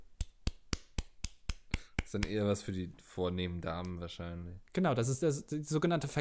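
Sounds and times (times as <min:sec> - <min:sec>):
crisp handclaps in offset opera style: 0:00.2 - 0:02.5
speech: 0:02.1 - 0:06.2.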